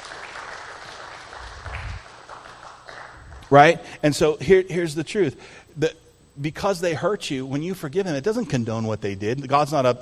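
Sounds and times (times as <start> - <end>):
audience applause: 0.0 - 3.5
speech: 3.5 - 10.0.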